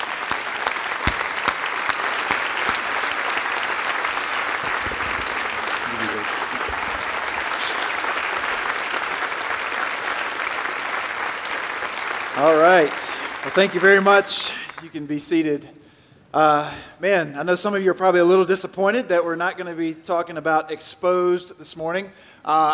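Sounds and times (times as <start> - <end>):
church congregation applauding to welcome a guest: 0.0 - 15.1
speech: 12.4 - 22.7.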